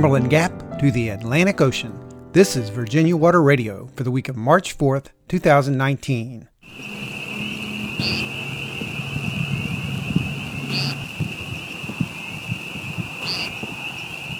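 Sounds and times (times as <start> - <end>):
speech: 0.0 - 6.9, 8.0 - 8.4
spring peeper frog calls at a streamside park: 6.6 - 14.3.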